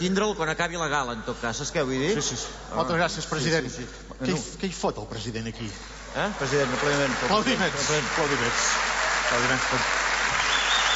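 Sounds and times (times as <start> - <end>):
speech: 0.0 - 10.0
audience applause at a gala greeting the president: 6.0 - 10.9.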